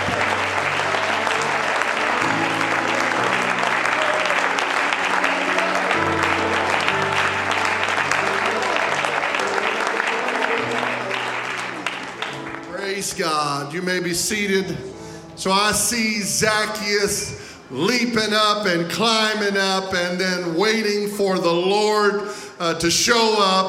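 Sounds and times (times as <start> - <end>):
audience clapping hands: 0.0 - 14.4
speech: 13.6 - 23.6.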